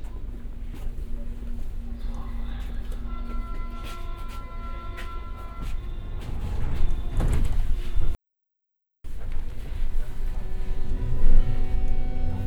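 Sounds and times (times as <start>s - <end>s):
U-Bahn underground train in Berlin: 0.0s - 8.2s, 9.1s - 12.4s.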